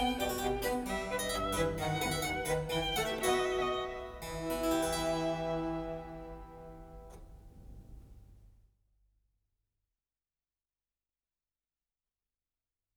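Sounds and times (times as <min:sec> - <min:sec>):
two violins and basso continuo playing a trio sonata in E minor: 0:00.0 - 0:07.5.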